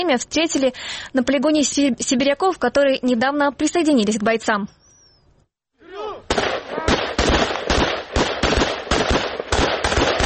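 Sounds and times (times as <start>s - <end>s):
speech: 0.0s - 4.8s
assault rifle gunfire during training: 6.3s - 10.2s.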